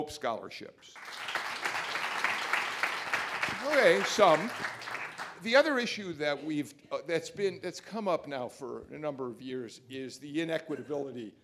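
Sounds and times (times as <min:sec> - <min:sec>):
speech: 0:00.0 - 0:01.8, 0:03.4 - 0:11.4
audience applause: 0:01.0 - 0:05.6.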